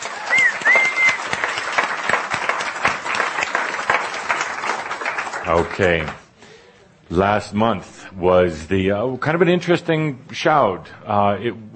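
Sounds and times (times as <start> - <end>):
audience applause: 0.0 - 6.2
speech: 5.5 - 6.2, 7.1 - 11.7.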